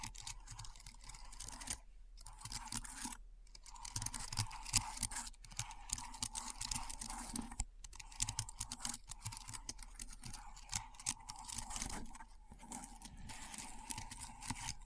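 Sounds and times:
keyboard typing: 0.0s - 14.8s.

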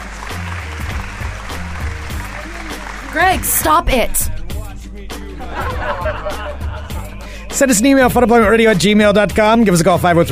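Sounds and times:
audience applause: 0.0s - 3.8s
speech: 3.2s - 4.4s, 7.6s - 10.3s
laughter: 5.3s - 7.7s.

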